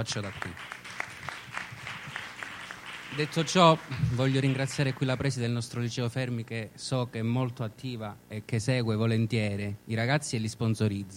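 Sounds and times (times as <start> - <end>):
speech: 0.0 - 0.7, 3.1 - 11.1
applause: 0.0 - 5.6.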